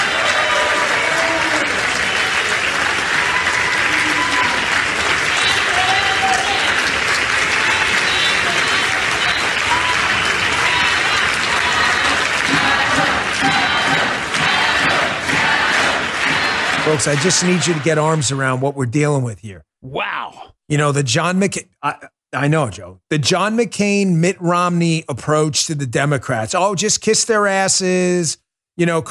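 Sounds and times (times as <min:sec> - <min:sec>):
large crowd applauding: 0:00.0 - 0:18.6
speech: 0:17.0 - 0:29.0.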